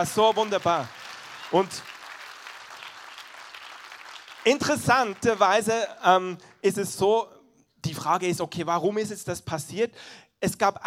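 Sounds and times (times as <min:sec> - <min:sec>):
speech: 0:00.0 - 0:01.9, 0:04.4 - 0:10.8
audience applause: 0:00.0 - 0:05.7.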